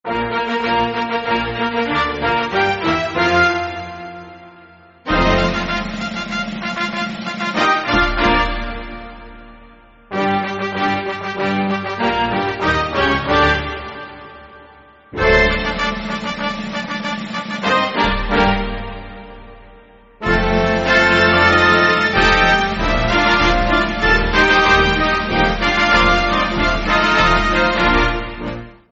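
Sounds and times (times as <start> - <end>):
national anthem: 0.1 - 28.8.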